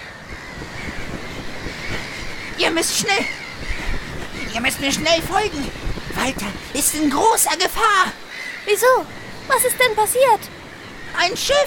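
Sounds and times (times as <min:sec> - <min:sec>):
bird screeching excitedly: 0:00.0 - 0:11.6
speech: 0:02.6 - 0:03.4, 0:04.5 - 0:10.5, 0:11.2 - 0:11.6.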